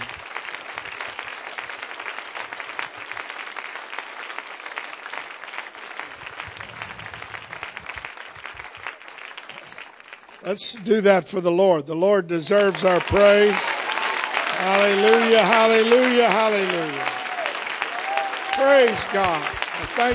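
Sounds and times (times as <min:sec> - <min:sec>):
church congregation applauding to welcome speakers: 0:00.0 - 0:11.6, 0:12.3 - 0:20.1
speech: 0:10.5 - 0:13.8, 0:14.6 - 0:17.2, 0:18.6 - 0:20.1.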